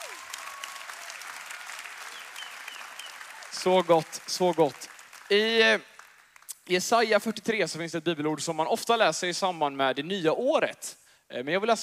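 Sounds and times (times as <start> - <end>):
warm applause from the audience: 0.0 - 6.5
speech: 3.6 - 5.9, 6.7 - 11.8.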